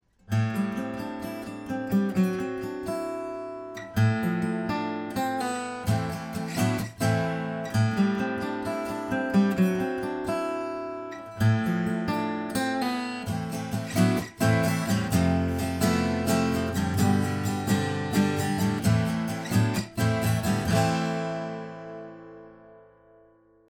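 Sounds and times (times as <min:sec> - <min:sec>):
acoustic guitar: 0:00.0 - 0:23.6.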